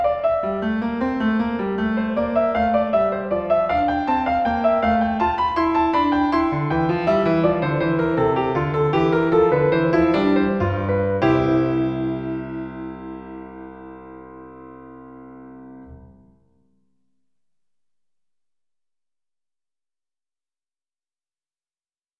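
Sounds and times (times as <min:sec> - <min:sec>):
piano: 0:00.0 - 0:17.2.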